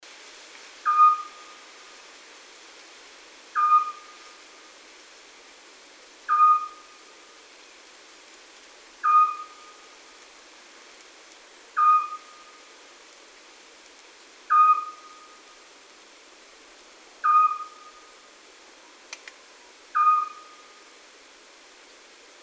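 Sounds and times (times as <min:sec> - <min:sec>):
Eurasian scops owl uttering a monotonous short whistle: 0:00.8 - 0:01.5, 0:03.6 - 0:04.2, 0:06.3 - 0:06.8, 0:09.0 - 0:09.8, 0:11.8 - 0:12.5, 0:14.5 - 0:15.4, 0:17.2 - 0:18.1, 0:19.9 - 0:20.7.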